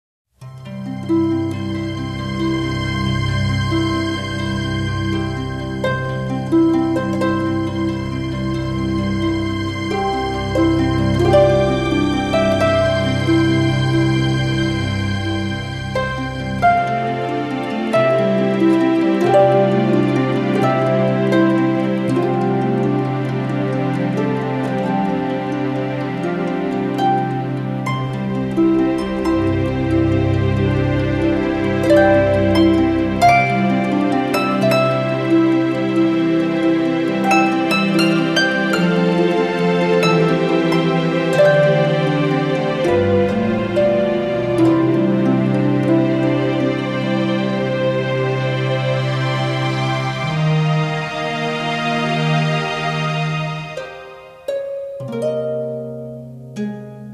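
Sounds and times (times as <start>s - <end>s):
harps: 0.4s - 57.1s.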